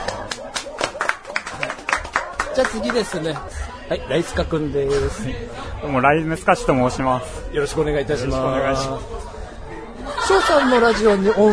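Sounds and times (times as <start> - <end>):
laughter: 0.0 - 3.4, 9.8 - 11.5
people clapping: 0.0 - 3.7
speech: 2.6 - 9.3, 10.4 - 11.5.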